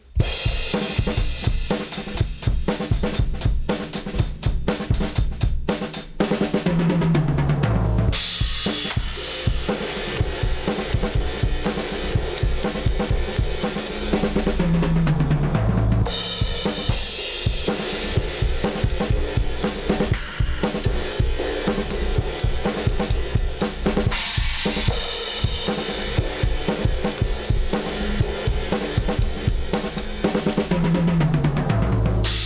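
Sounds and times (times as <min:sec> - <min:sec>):
drums: 0:00.0 - 0:32.4.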